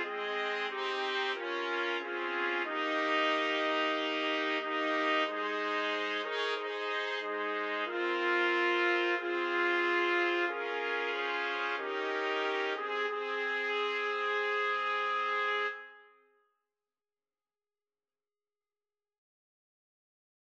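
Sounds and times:
trumpets playing: 0.0s - 16.1s.

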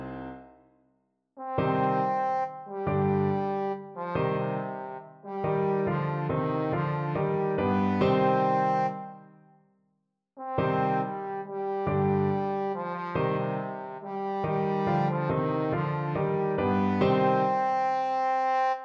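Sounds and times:
trombone: 1.4s - 9.1s, 10.4s - 18.8s.

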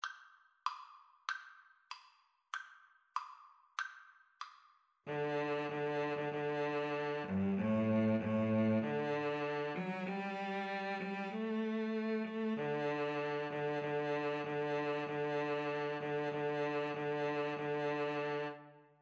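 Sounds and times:
viola and cello duet: 5.1s - 18.9s.

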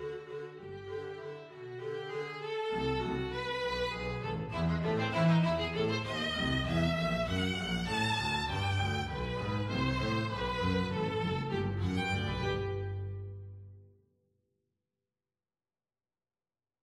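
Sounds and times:
violin playing a waltz: 0.0s - 13.6s
double bass playing a waltz: 4.0s - 13.7s.

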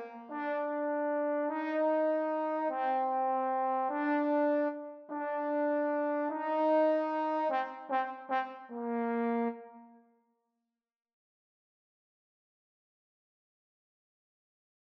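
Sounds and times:
trombone duet: 0.0s - 9.6s.

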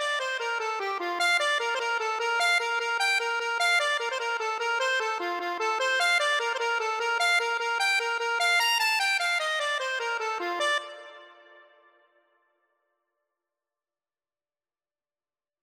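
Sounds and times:
accordion tune: 0.0s - 11.6s.

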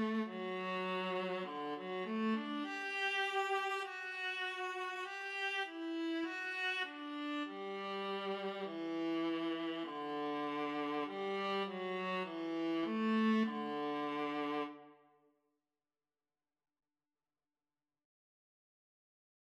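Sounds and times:
viola duet: 0.0s - 15.0s.

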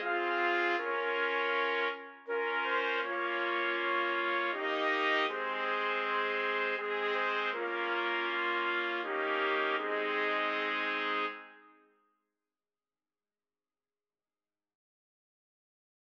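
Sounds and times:
trumpet quartet playing: 0.0s - 11.6s.

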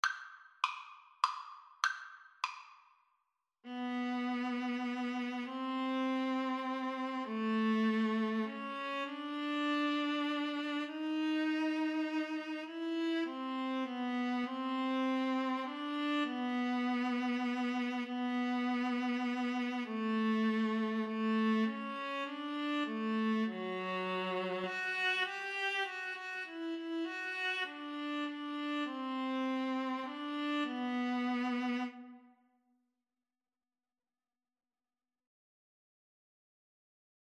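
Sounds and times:
violin and viola duet: 3.7s - 32.3s.

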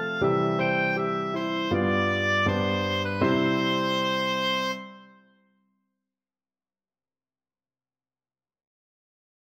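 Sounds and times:
oboe melody: 0.0s - 5.4s.

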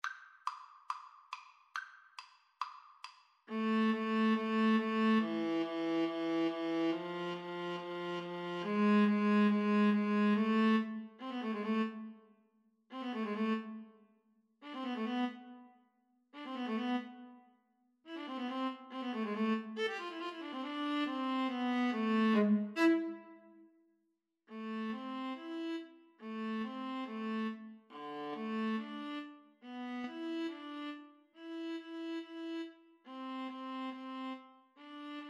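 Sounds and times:
viola duet: 3.5s - 12.2s, 12.9s - 13.9s, 14.6s - 15.7s, 16.4s - 17.4s, 18.1s - 23.6s, 24.5s - 35.2s.

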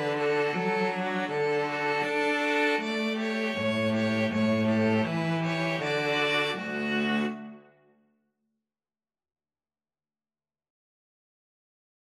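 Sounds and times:
string trio playing: 0.0s - 7.8s.

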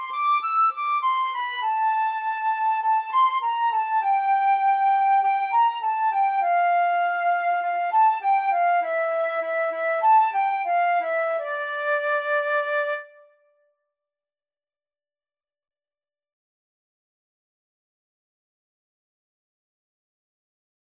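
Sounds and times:
flute duet: 0.0s - 13.5s.

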